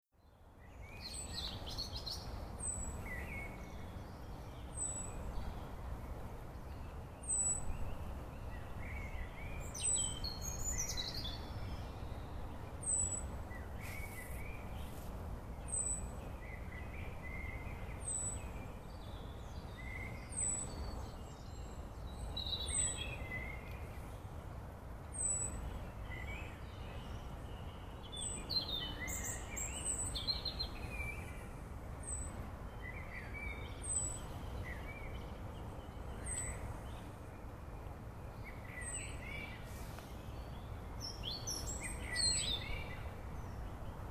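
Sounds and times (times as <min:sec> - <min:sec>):
bird: 0:00.2 - 0:05.8, 0:06.6 - 0:24.2, 0:25.1 - 0:44.0.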